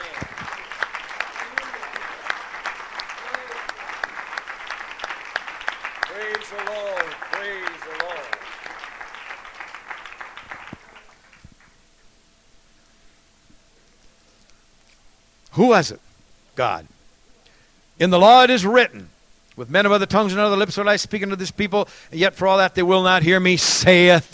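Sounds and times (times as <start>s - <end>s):
voices calling out: 0.0s - 4.6s, 6.0s - 8.7s
crowd clapping: 0.0s - 11.8s
speech: 15.6s - 16.9s, 18.0s - 24.3s.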